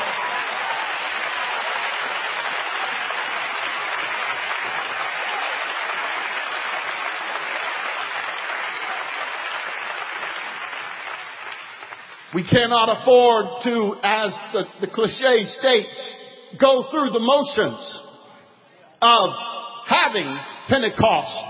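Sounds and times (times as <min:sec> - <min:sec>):
large crowd applauding: 0:00.0 - 0:12.4
speech: 0:12.4 - 0:18.0, 0:19.0 - 0:21.4.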